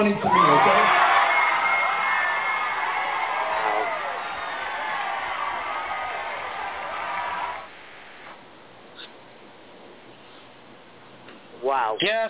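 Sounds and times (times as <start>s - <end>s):
speech: 0.0s - 0.6s
audience cheering and applauding: 0.0s - 8.4s.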